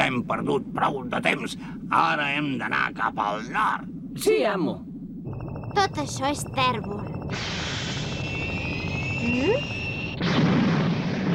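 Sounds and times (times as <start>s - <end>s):
speech: 0.1s - 4.9s, 5.8s - 7.8s, 9.2s - 10.6s
spaceship engines starting and blasting off: 5.3s - 11.3s.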